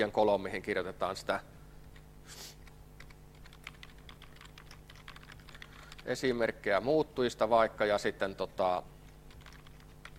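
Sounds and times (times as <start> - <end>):
speech: 0.0 - 1.6, 6.0 - 8.9
typing three slashes on a computer keyboard: 3.0 - 6.2, 9.1 - 10.1.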